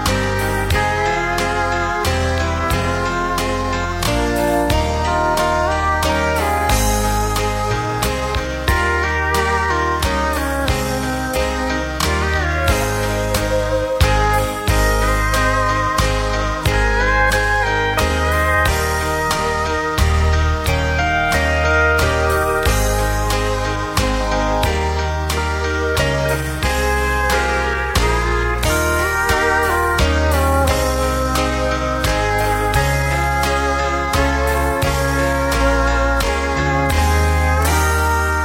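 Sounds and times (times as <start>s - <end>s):
low lead synth: 0.0s - 38.4s.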